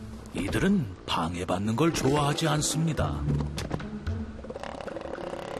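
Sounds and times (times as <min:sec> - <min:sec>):
speech: 0:00.5 - 0:03.8
elephant seal colony calling: 0:04.2 - 0:05.5.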